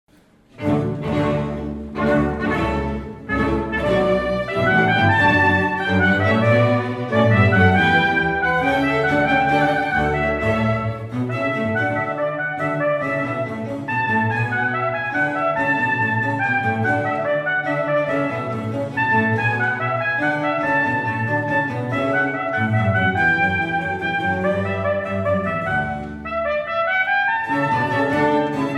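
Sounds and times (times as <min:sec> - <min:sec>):
trumpet: 0:00.6 - 0:28.7.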